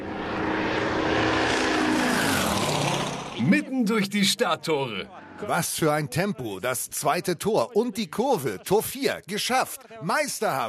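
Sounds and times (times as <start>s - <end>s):
racing drone propellers buzzing: 0.0s - 3.4s
speech: 3.5s - 10.6s.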